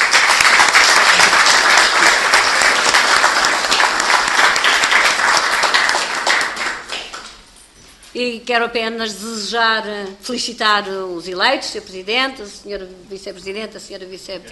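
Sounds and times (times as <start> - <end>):
round of applause: 0.0 - 7.5
speech: 8.2 - 14.4.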